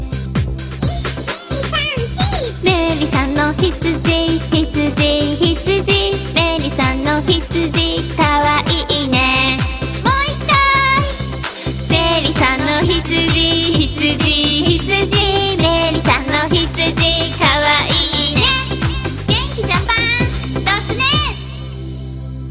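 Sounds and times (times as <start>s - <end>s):
child singing in Japan: 0.8s - 11.2s, 11.9s - 21.4s.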